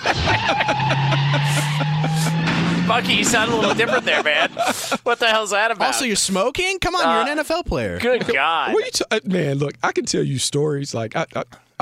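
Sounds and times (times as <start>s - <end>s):
car tires squealing as it drives off: 0.0s - 4.8s
laughter: 0.0s - 5.9s, 8.0s - 8.9s
car engine drone: 0.2s - 4.5s
speech: 0.5s - 0.7s, 3.0s - 11.7s.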